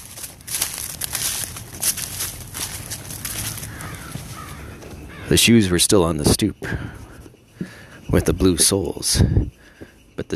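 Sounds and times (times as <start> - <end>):
footsteps crunching leaves on a lawn: 0.0 - 5.3
speech: 5.3 - 7.0, 8.1 - 9.6, 10.2 - 10.3.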